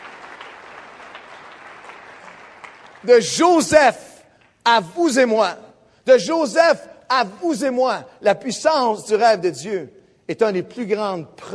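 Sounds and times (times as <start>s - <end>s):
church congregation clapping during a morning service: 0.0s - 4.7s
speech: 3.0s - 4.0s, 4.7s - 11.5s.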